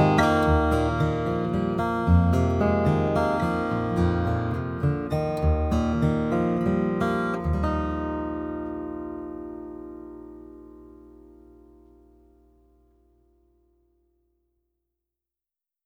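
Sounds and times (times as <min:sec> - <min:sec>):
mahogany baritone guitar playing a waltz: 0:00.0 - 0:12.2.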